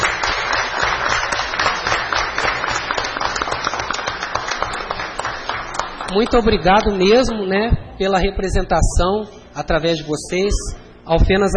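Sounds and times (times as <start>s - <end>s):
audience applause: 0.0s - 6.6s
speech: 6.1s - 11.5s.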